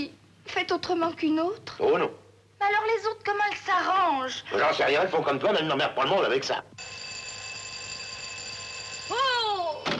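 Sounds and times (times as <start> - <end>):
speech: 0.0 - 7.0
telephone ringing: 6.8 - 9.8.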